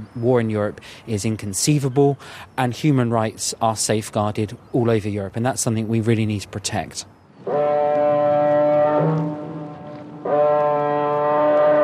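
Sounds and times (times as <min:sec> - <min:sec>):
speech: 0:00.0 - 0:07.7
car ferry horn blasts in fog: 0:07.4 - 0:11.8.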